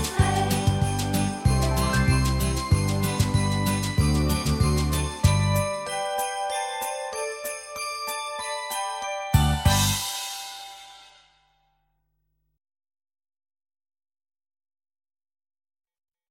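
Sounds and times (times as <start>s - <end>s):
christmas song: 0.0s - 11.5s.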